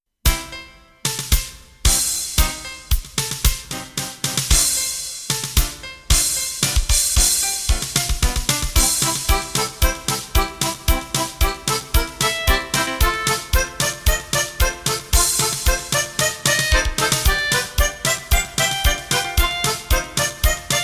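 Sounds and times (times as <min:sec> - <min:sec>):
drums: 0:00.3 - 0:20.8
piano: 0:00.3 - 0:20.8
accordion: 0:03.7 - 0:04.8, 0:05.6 - 0:20.8
guitar: 0:07.7 - 0:20.8
clarinet or flute: 0:08.8 - 0:20.8.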